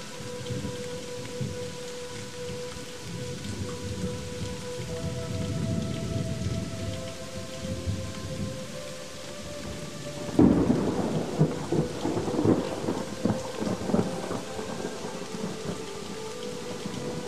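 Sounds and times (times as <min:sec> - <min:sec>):
rain: 0:00.0 - 0:17.2
relaxation music: 0:00.0 - 0:17.2
thunder: 0:10.2 - 0:15.8.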